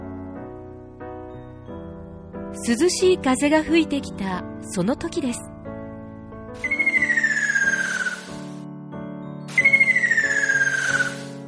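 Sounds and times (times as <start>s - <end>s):
soft music: 0.0s - 11.4s
speech: 2.5s - 5.5s
ruddy kingfisher trilling call: 6.6s - 8.6s, 9.5s - 11.4s.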